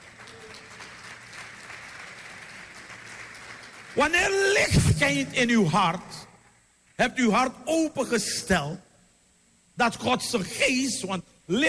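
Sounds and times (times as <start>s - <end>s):
audience applause: 0.0s - 4.1s
speech: 4.0s - 6.3s, 7.0s - 8.8s, 9.8s - 11.6s.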